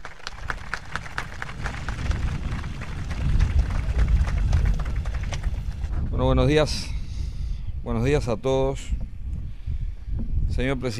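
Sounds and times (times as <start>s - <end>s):
audience applause: 0.0s - 5.9s
speech: 6.2s - 7.0s, 7.8s - 9.0s, 10.5s - 10.9s.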